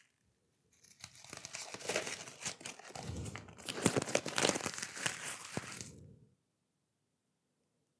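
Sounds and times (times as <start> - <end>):
paper crumpling: 0.7 - 6.2.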